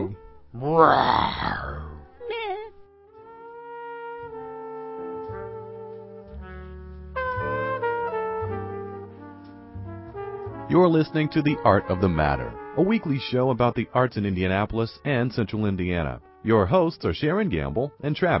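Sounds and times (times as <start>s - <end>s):
voice imitating a lion's roar: 0.0s - 2.5s
speech: 0.5s - 1.9s, 10.7s - 18.3s
steady instrumental music: 2.0s - 18.3s.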